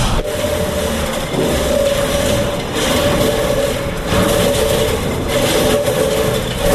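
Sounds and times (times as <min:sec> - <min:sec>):
church bell starting to swing: 0:00.0 - 0:06.7.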